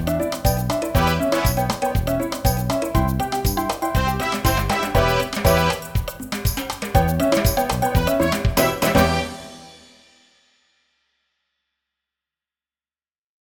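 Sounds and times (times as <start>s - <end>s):
salsa music: 0.0s - 9.9s.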